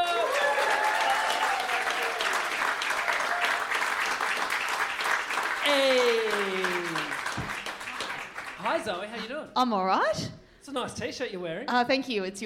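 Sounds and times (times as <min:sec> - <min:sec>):
audience applause: 0:00.0 - 0:09.2
speech: 0:08.8 - 0:12.4.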